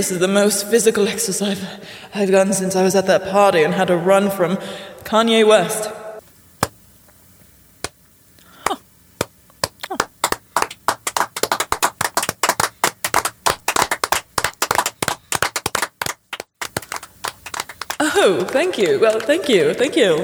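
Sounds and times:
speech: 0:00.0 - 0:06.0, 0:18.6 - 0:20.2
audience clapping: 0:06.2 - 0:18.0.

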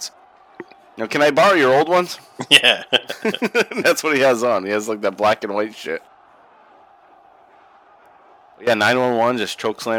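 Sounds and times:
crowd chanting at a 1995 ECW wrestling arena show: 0:00.0 - 0:01.0, 0:05.2 - 0:09.4
speech: 0:01.0 - 0:06.1, 0:08.6 - 0:09.9
laughter: 0:02.3 - 0:04.2.

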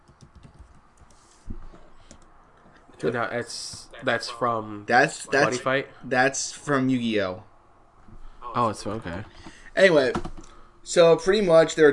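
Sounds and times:
computer keyboard typing in a Skype chat: 0:00.0 - 0:01.2
speech: 0:03.0 - 0:07.5, 0:08.5 - 0:10.3, 0:10.9 - 0:11.9.

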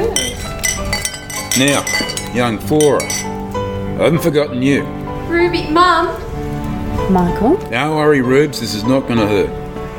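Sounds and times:
glasses clinking in a toast: 0:00.1 - 0:03.4
speech: 0:01.5 - 0:03.3, 0:04.0 - 0:06.3, 0:06.9 - 0:09.6.

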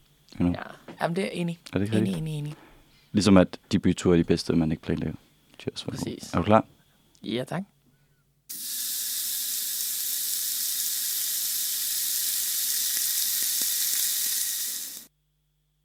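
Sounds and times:
speech: 0:00.4 - 0:07.7
food sizzling on a grill: 0:08.5 - 0:15.1.

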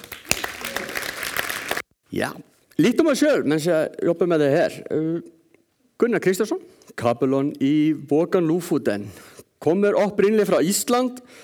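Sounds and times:
applause: 0:00.0 - 0:01.8
speech: 0:02.1 - 0:05.4, 0:06.0 - 0:11.4.

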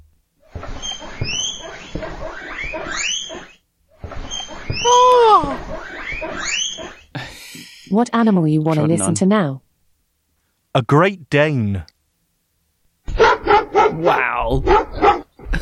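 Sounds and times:
guinea pig squeaks, chirps and chattering squeals: 0:00.6 - 0:07.1
speech: 0:07.9 - 0:09.6, 0:10.8 - 0:11.9, 0:14.0 - 0:15.6.

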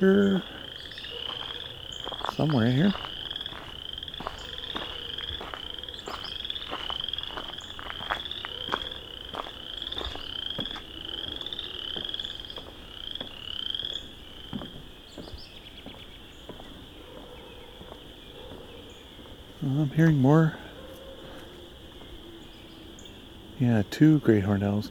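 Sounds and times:
speech: 0:00.0 - 0:00.6, 0:02.3 - 0:03.1, 0:20.0 - 0:20.6, 0:23.6 - 0:24.8
chorus frogs calling: 0:00.0 - 0:24.8.

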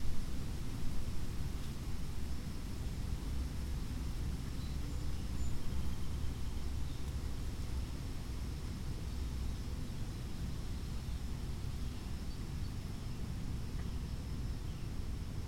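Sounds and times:
wind through oak and hickory trees: 0:00.0 - 0:15.4.

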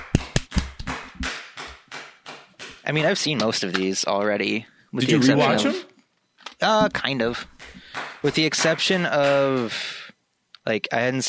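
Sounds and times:
hands clapping: 0:00.0 - 0:04.0, 0:06.5 - 0:10.1
speech: 0:02.9 - 0:05.9, 0:06.6 - 0:07.5, 0:08.2 - 0:10.0, 0:10.6 - 0:11.2.

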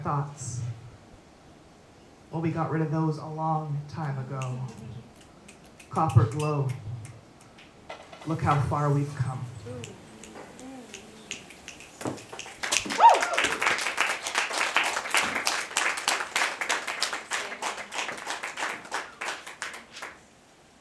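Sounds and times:
speech: 0:00.0 - 0:00.6, 0:02.3 - 0:05.1, 0:05.9 - 0:06.9, 0:08.2 - 0:10.0
audience applause: 0:09.8 - 0:20.2.

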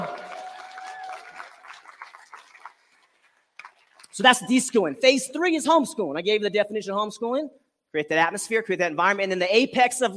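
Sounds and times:
crowd clapping: 0:00.0 - 0:04.5
speech: 0:04.2 - 0:10.1.

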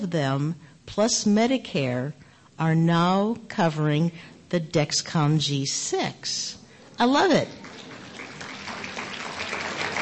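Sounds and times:
speech: 0:00.0 - 0:07.7
audience applause: 0:07.6 - 0:09.9.

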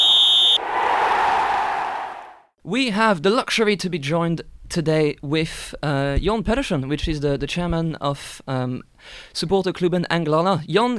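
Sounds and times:
whistle blast: 0:00.0 - 0:01.3
speech: 0:02.7 - 0:10.9.

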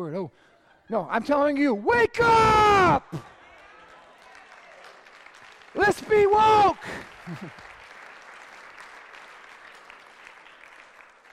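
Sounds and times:
speech: 0:00.0 - 0:03.3, 0:05.8 - 0:07.7
audience applause: 0:03.1 - 0:11.3.

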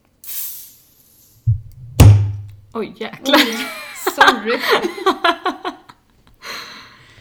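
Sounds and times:
small chubby Belgian-style beer bottle opening with fizzing hiss: 0:00.0 - 0:02.6
low thumps: 0:01.5 - 0:02.7
speech: 0:02.8 - 0:05.7
laughter: 0:03.3 - 0:06.1.

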